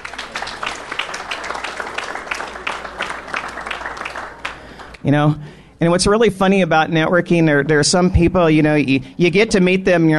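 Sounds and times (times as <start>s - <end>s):
crowd applause: 0.0s - 5.0s
speech: 5.0s - 10.1s.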